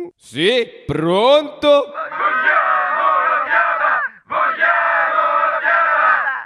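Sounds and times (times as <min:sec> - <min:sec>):
speech: 0:00.3 - 0:02.2
angry crowd shouting: 0:02.0 - 0:06.4.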